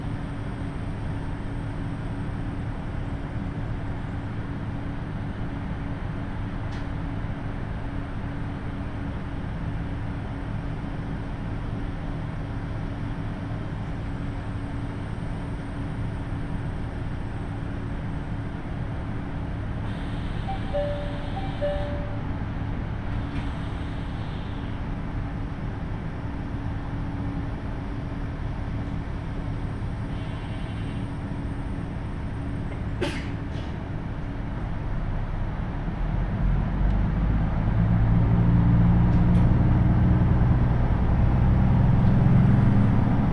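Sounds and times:
KiHa 75 diesel train engine drone on the Takayama Main Line: 0.0s - 43.3s
faint high whine: 19.9s - 22.3s
two brief tones: 20.2s - 22.3s.

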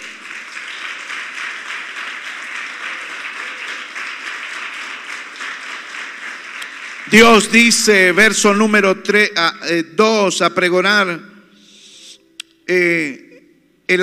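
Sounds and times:
audience applauding: 0.0s - 8.5s
speech: 7.1s - 11.3s, 12.7s - 13.2s, 13.9s - 14.0s.

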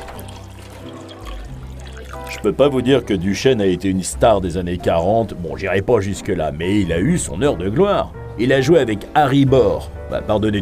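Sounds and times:
whisky pouring into a glass: 0.0s - 3.2s
speech: 2.3s - 10.6s.

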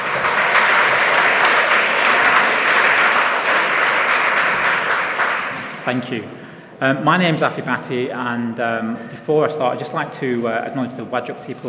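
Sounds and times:
audience applause: 0.0s - 6.1s
speech: 5.8s - 11.6s.

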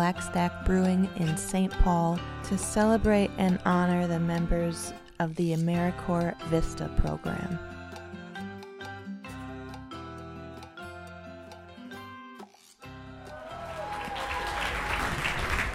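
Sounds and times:
speech: 0.0s - 7.8s
audience clapping: 13.3s - 15.7s.

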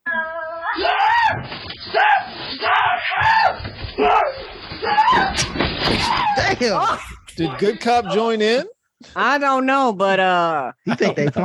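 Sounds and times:
cornered cat yowling: 0.0s - 6.5s
speech: 5.9s - 11.4s
laughter: 6.4s - 8.6s, 10.8s - 11.4s.

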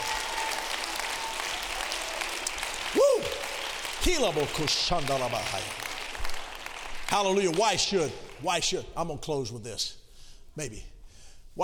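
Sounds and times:
audience clapping: 0.0s - 9.0s
speech: 4.0s - 5.8s, 7.1s - 10.0s, 10.6s - 10.9s.

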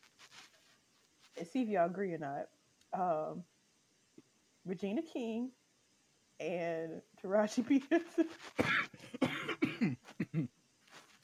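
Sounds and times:
speech: 1.4s - 3.5s, 4.7s - 5.6s, 6.4s - 8.8s, 9.8s - 10.6s
coughing: 8.4s - 10.5s.

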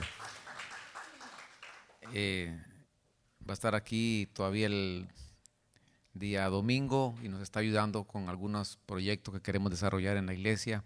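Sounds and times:
audience applause: 0.0s - 2.2s
speech: 2.1s - 2.7s, 3.5s - 5.2s, 6.2s - 10.8s.

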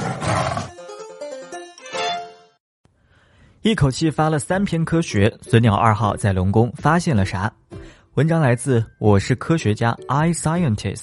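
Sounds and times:
tiger roaring: 0.0s - 0.7s
speech: 3.6s - 7.6s, 8.2s - 11.0s.

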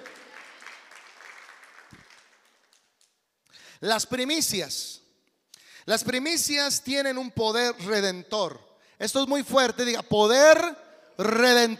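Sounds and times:
audience applause: 0.0s - 2.9s
speech: 3.8s - 5.0s, 5.9s - 11.7s.

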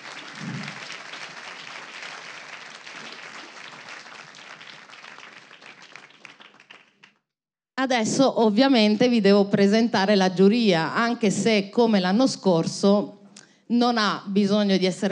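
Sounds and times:
audience applause: 0.0s - 7.2s
speech: 7.8s - 15.1s.

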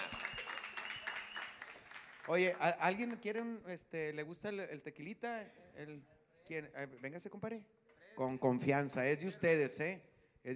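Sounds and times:
audience applause: 0.0s - 3.2s
speech: 2.3s - 10.5s.

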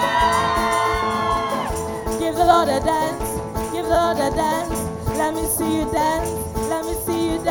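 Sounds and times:
audience shouting and cheering: 0.0s - 2.2s
speech: 2.5s - 3.3s, 3.9s - 7.5s.

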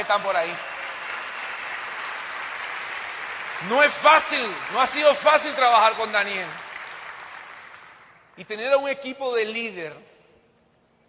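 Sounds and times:
speech: 0.0s - 0.8s, 3.6s - 6.6s, 8.4s - 10.1s
crowd applauding: 0.0s - 8.3s.

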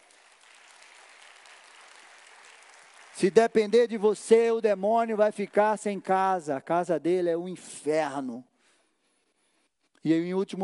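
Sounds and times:
crowd applause: 0.0s - 3.6s
speech: 3.2s - 8.5s, 10.0s - 10.6s.

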